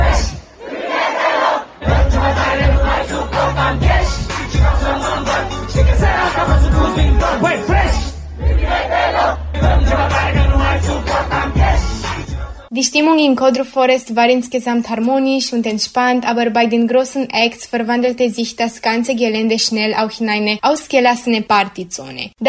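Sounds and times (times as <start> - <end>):
festival crowd singing along at Codru Festival: 0.0 - 12.7
speech: 12.8 - 22.4.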